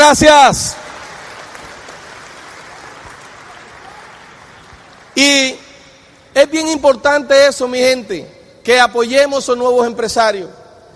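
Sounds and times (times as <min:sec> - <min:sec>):
speech: 0:00.1 - 0:00.8, 0:05.2 - 0:05.6, 0:06.4 - 0:10.6
audience applause: 0:00.7 - 0:05.2.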